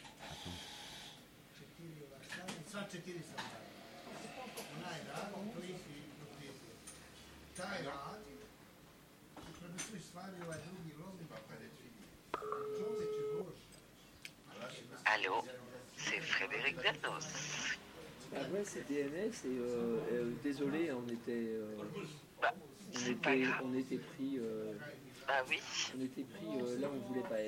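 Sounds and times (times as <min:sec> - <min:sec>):
speech: 0:02.8 - 0:06.7, 0:07.6 - 0:08.4, 0:09.5 - 0:13.6, 0:14.6 - 0:27.4
telephone dialing tones for an on-air call: 0:12.4 - 0:13.4.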